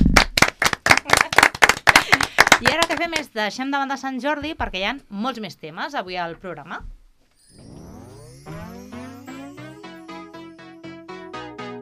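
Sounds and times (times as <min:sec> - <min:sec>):
small group clapping on a Catalan radio show: 0:00.0 - 0:03.3
speech: 0:02.6 - 0:06.9.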